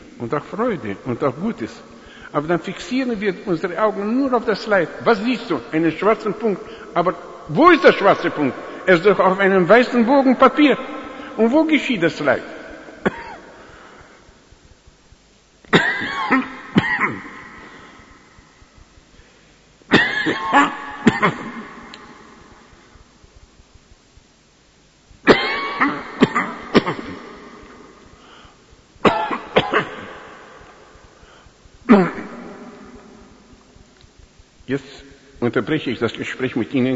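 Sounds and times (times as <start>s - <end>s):
speech: 0.2s - 13.2s, 35.5s - 36.9s
coughing: 13.0s - 14.0s, 15.7s - 18.2s, 19.9s - 22.3s, 25.2s - 27.9s, 29.0s - 30.7s, 31.8s - 33.0s
throat clearing: 13.1s - 13.4s, 15.7s - 18.0s, 25.3s - 27.3s, 29.1s - 30.2s, 31.9s - 32.5s.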